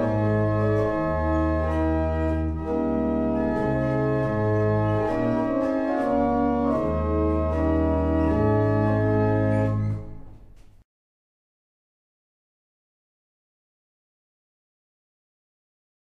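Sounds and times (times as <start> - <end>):
barrel organs: 0.0 - 10.4.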